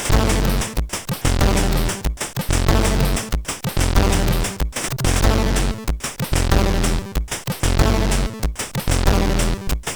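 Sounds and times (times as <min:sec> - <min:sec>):
dirty bass from SID CSG8580R5 chip: 0:00.1 - 0:09.7.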